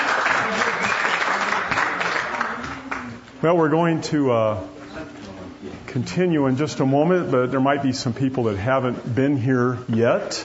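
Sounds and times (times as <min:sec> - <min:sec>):
audience applause at a live show: 0:00.0 - 0:03.1
speech: 0:03.4 - 0:04.8, 0:05.6 - 0:10.4.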